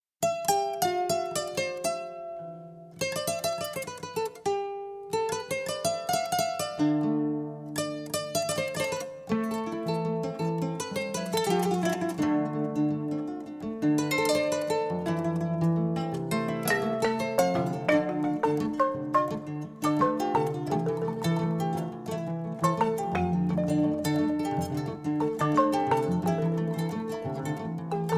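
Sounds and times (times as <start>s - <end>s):
instrumental music: 0.2s - 28.1s.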